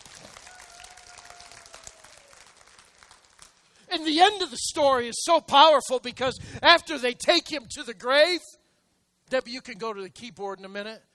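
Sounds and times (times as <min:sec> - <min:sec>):
audience applause: 0:00.0 - 0:03.7
speech: 0:03.9 - 0:08.6, 0:09.3 - 0:11.1.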